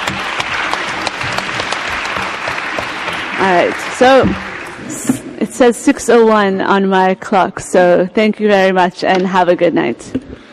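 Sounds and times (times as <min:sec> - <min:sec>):
audience applause: 0:00.0 - 0:05.3
speech: 0:03.4 - 0:04.9, 0:05.6 - 0:10.4.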